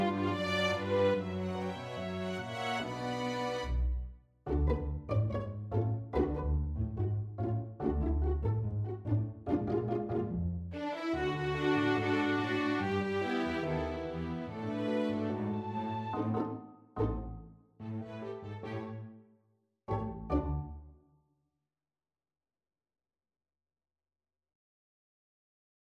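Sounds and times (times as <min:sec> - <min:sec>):
tango played on strings: 0:00.0 - 0:19.2, 0:19.9 - 0:20.9.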